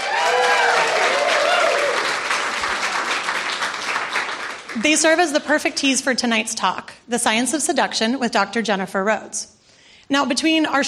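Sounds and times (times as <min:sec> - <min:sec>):
audience round of applause: 0:00.0 - 0:05.3
speech: 0:04.8 - 0:10.8.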